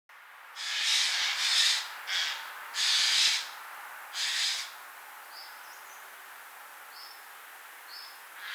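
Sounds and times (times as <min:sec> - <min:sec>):
Eurasian jay uttering hoarse rasping screeching calls: 0:00.6 - 0:03.5, 0:04.2 - 0:04.7.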